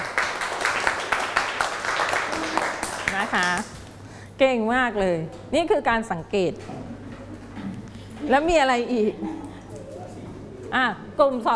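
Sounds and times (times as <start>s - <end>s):
group applause in classroom: 0.0s - 3.9s
speech: 3.3s - 3.8s, 4.4s - 6.8s, 8.2s - 9.3s, 10.7s - 11.5s.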